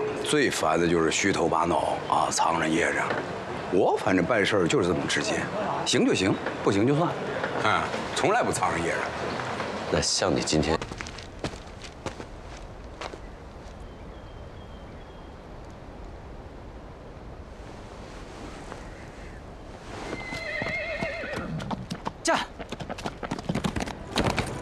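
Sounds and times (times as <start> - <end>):
faint wind noise: 0.0 - 24.6
horse hooves clip-clopping while riding: 10.6 - 13.8, 20.1 - 24.6
horse whinnying: 20.0 - 21.8.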